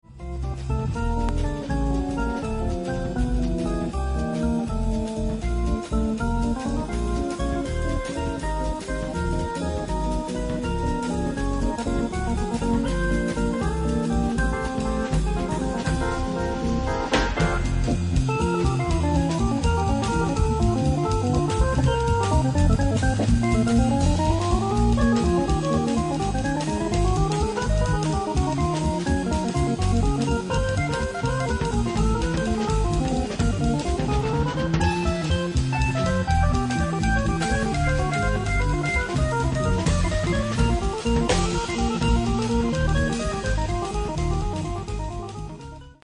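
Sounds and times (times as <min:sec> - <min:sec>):
Hammond organ: 0:00.1 - 0:46.0.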